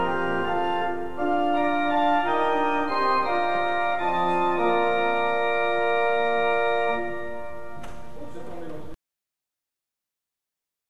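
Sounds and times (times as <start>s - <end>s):
organs: 0.0s - 8.6s
bombarde: 0.0s - 9.0s.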